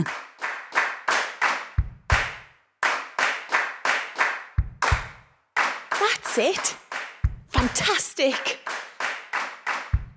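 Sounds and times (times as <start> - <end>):
speech: 0.0 - 0.2, 6.4 - 6.8, 7.6 - 8.8
group clapping along in rhythm: 0.0 - 10.1
deep thumping beats: 1.8 - 2.4, 4.6 - 5.3, 6.2 - 8.0, 9.9 - 10.1.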